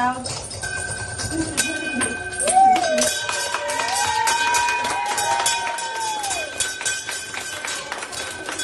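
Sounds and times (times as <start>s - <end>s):
bell rung marking end of treatment: 0.2s - 8.6s
crowd clapping: 2.0s - 8.6s
crowd cheering: 2.4s - 8.6s.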